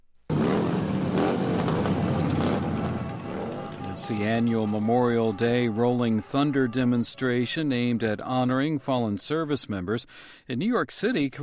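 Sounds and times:
motorcycles revving on city streets: 0.3s - 6.2s
speech: 4.0s - 11.4s.

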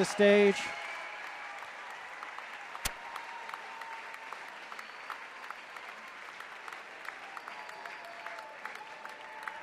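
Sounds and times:
large concert crowd applauding: 0.0s - 9.6s
whistles from crowd: 4.6s - 5.6s, 7.2s - 9.5s.

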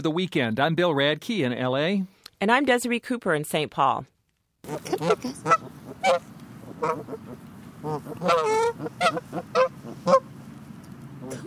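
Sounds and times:
speech: 0.0s - 10.3s, 11.2s - 11.4s
geese honking in a backyard in Northern California: 4.6s - 11.4s.

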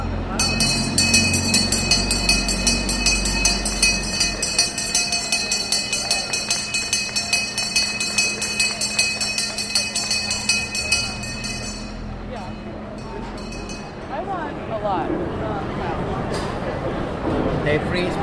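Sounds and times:
handbell rung to open a market: 0.0s - 14.2s
murmuring voices: 0.0s - 17.5s.

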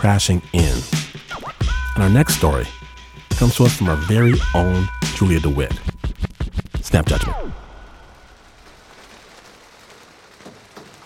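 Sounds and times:
speech: 0.0s - 1.0s, 2.0s - 2.8s, 3.4s - 5.9s, 6.9s - 7.4s
rain falling outside a window: 6.8s - 11.0s.

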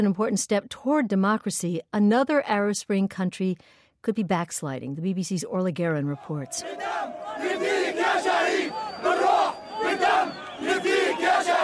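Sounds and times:
speech: 0.0s - 8.3s
large crowd of protesters chanting: 6.2s - 11.6s.

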